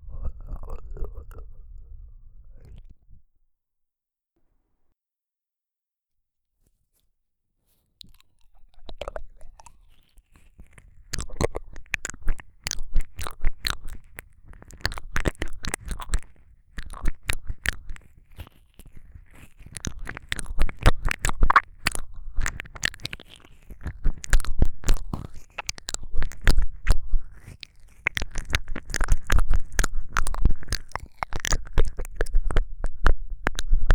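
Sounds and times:
ASMR ear licking sounds: 8.0s - 33.9s.

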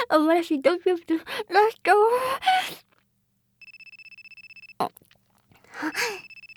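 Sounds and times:
speech: 0.1s - 2.4s
telephone ringing: 3.6s - 4.8s, 6.2s - 6.5s.

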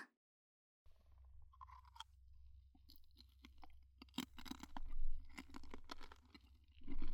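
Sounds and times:
eating fruit candy ASMR: 1.4s - 2.2s, 2.8s - 7.1s.

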